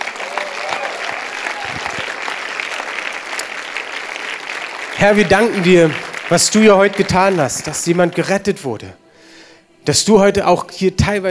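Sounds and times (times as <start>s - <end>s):
scattered cheers: 0.0s - 3.5s
audience applause: 0.0s - 8.5s
speech: 5.0s - 9.0s, 9.8s - 11.2s.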